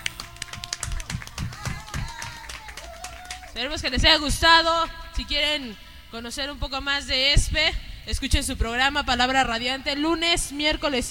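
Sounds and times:
audience applause: 0:00.0 - 0:03.6
speech: 0:03.6 - 0:11.0.

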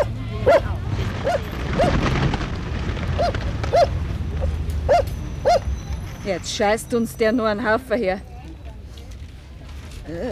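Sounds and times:
dog barking in short sharp high-pitched yaps: 0:00.0 - 0:02.0, 0:03.2 - 0:03.9, 0:04.9 - 0:05.7
low rumbling noise: 0:00.0 - 0:07.6
speech: 0:06.3 - 0:08.3, 0:10.1 - 0:10.3.

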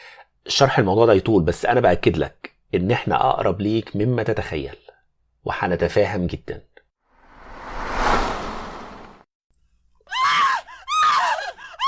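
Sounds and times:
speech: 0:00.5 - 0:04.8, 0:05.4 - 0:06.7
woman screaming outside: 0:10.1 - 0:11.8.

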